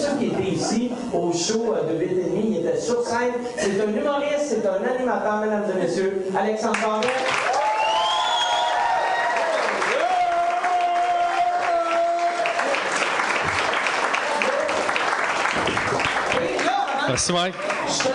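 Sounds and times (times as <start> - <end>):
speech: 0.7 - 7.5, 17.2 - 18.1
crowd applauding: 6.7 - 18.1
drawn-out whoops and shouts: 7.5 - 12.6.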